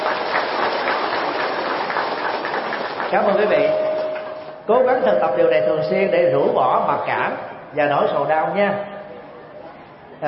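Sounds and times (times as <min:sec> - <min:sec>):
crowd applauding loudly: 0:00.0 - 0:04.5
speech: 0:03.1 - 0:03.8, 0:04.7 - 0:08.9.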